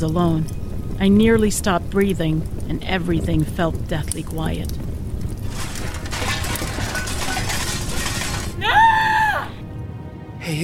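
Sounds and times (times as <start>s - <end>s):
speech: 0.0s - 4.8s, 10.5s - 10.6s
window glass shattering: 5.4s - 8.8s.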